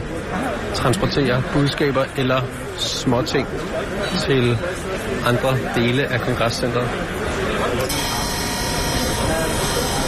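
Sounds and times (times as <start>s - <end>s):
dense busy murmur: 0.0s - 10.0s
speech: 0.3s - 8.1s
field telephone ringing with metallic rattle: 7.9s - 10.0s.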